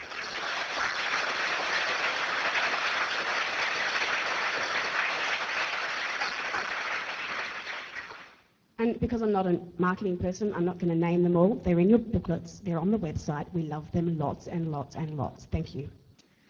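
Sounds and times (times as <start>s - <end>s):
audience applause: 0.0s - 8.4s
speech: 8.8s - 16.0s.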